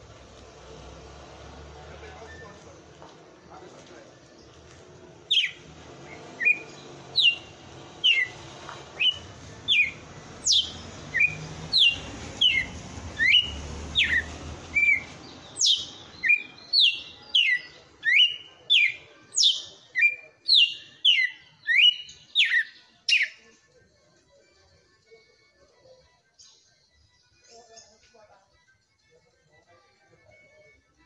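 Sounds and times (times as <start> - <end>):
red-cowled cardinal whistling: 5.3 - 8.4, 9.0 - 23.4.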